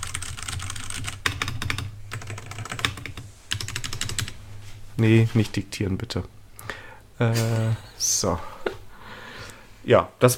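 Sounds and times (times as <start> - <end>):
typing on a computer keyboard: 0.0 - 4.4
speech: 5.0 - 6.4, 7.2 - 8.5, 9.8 - 10.3.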